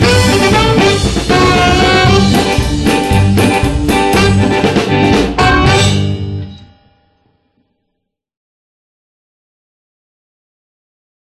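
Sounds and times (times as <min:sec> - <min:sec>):
saxophone: 0:00.0 - 0:06.3.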